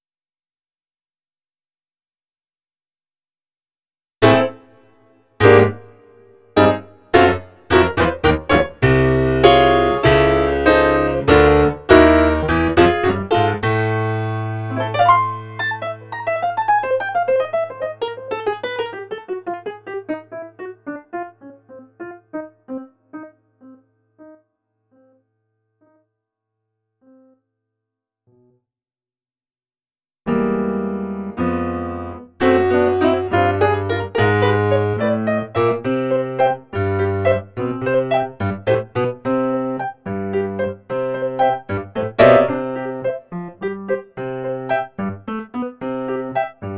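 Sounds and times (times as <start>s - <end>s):
pseudo-acoustic piano spasmodic playing: 4.2s - 24.4s, 30.3s - 46.7s.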